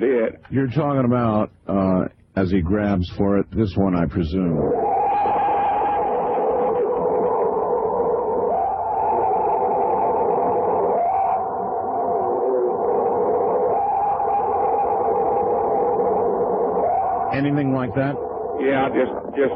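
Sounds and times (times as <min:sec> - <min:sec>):
speech: 0:00.0 - 0:05.4, 0:17.4 - 0:19.5
recorded scream attributed to Bigfoot: 0:04.4 - 0:19.5.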